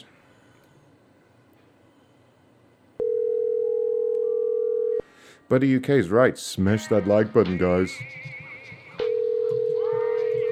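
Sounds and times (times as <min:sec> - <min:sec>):
telephone tone from a call going to voicemail: 0:03.0 - 0:05.0, 0:09.0 - 0:10.4
speech: 0:05.5 - 0:08.4.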